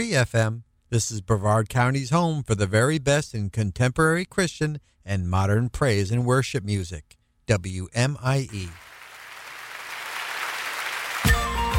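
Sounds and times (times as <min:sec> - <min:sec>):
speech: 0:00.0 - 0:08.9
large crowd clapping hands: 0:08.5 - 0:11.7.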